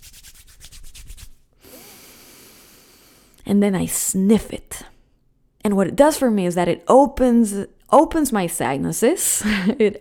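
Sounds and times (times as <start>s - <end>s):
palms rubbing together with essential oil: 0.0s - 1.4s
speech: 3.5s - 4.9s, 5.7s - 9.9s.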